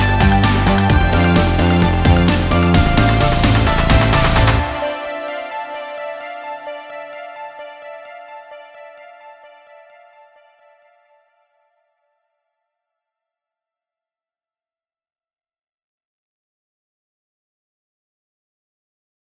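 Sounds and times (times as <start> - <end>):
tape synths: 0.0 - 9.1.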